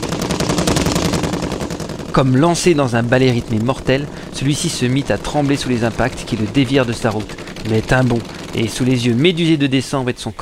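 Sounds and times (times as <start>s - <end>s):
machine guns firing: 0.0s - 10.0s
speech: 2.1s - 10.3s.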